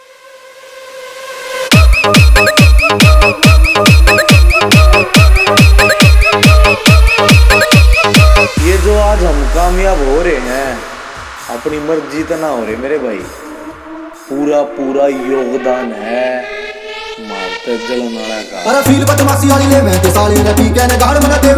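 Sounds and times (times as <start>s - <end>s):
DJ remix of a Haryanvi song: 1.7s - 21.5s.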